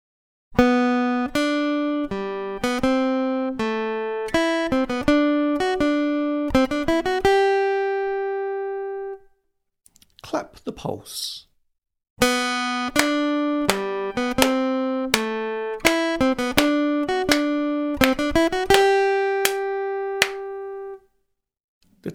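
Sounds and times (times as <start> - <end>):
acoustic guitar rhythm test: 0.6 - 8.4, 12.2 - 20.9.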